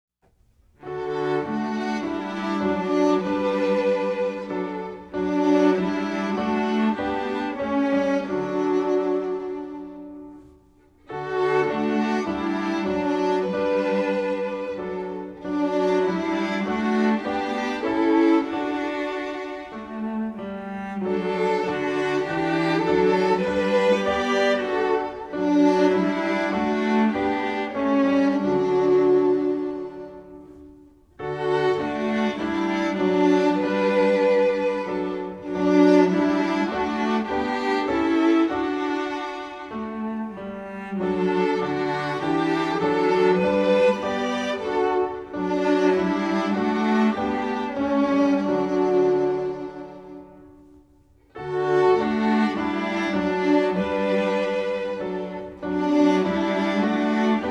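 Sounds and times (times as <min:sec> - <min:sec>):
music: 0:00.2 - 0:57.5.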